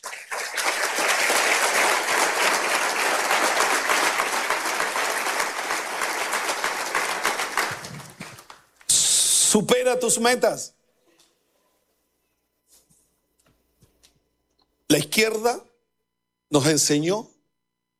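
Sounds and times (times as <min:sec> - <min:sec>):
audience applause: 0:00.0 - 0:08.8
speech: 0:09.6 - 0:10.8, 0:15.2 - 0:15.7, 0:16.5 - 0:17.3.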